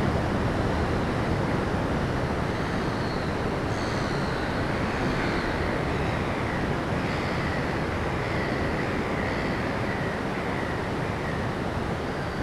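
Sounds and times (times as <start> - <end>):
trains: 0.0 - 12.4.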